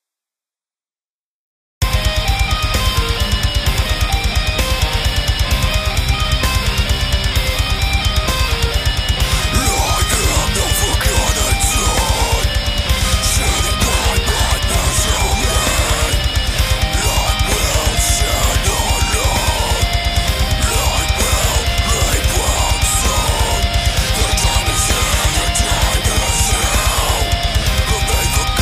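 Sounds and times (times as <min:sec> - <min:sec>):
progressive shred metal: 0:01.8 - 0:28.6.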